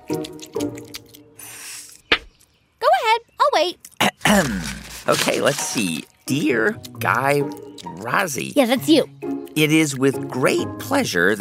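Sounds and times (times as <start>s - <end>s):
exaggerated gum chewing: 0.0s - 2.5s, 3.8s - 10.3s
speech: 0.1s - 0.8s, 3.6s - 11.4s.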